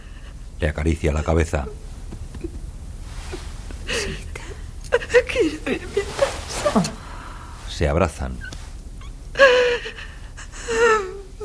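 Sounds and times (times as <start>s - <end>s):
speech: 0.6s - 1.9s, 5.1s - 6.0s, 6.7s - 7.0s, 7.8s - 8.5s
young woman sobbing while seated on a bed: 3.2s - 7.4s, 8.4s - 11.4s.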